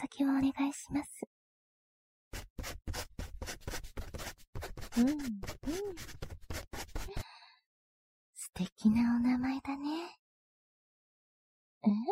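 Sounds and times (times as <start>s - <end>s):
speech: 0.1s - 1.3s, 5.0s - 6.2s, 8.6s - 10.2s, 11.8s - 12.1s
pen writing on a paper form: 2.3s - 7.2s.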